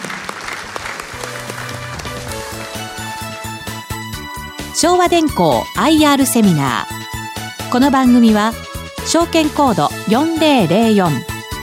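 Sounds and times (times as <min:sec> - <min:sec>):
audience applause: 0:00.0 - 0:03.5
speech: 0:04.8 - 0:07.0, 0:07.7 - 0:11.6.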